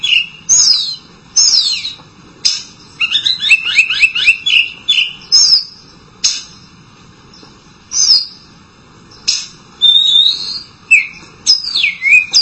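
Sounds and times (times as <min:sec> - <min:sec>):
Oriental magpie-robin whistling: 0:00.0 - 0:06.6, 0:07.9 - 0:08.5, 0:09.1 - 0:12.4.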